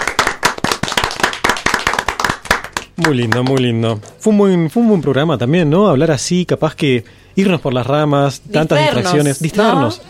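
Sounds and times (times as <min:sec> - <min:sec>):
studio applause celebrating a 200th program: 0:00.0 - 0:03.7
speech: 0:03.0 - 0:10.0.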